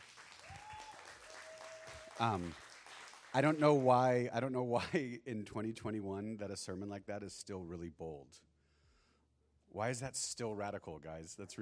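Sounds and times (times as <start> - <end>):
hands clapping in applause: 0.0 - 4.1
speech: 2.2 - 2.6, 3.3 - 8.5, 9.7 - 11.6.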